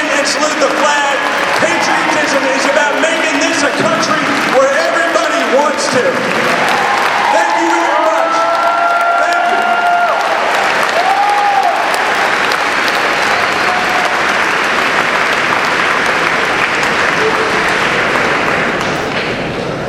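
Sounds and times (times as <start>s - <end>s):
audience applause: 0.0s - 19.2s
speech: 0.3s - 1.0s.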